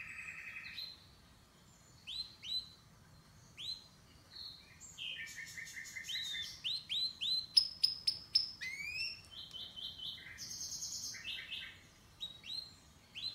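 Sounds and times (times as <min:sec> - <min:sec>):
canary singing: 0:00.0 - 0:13.3.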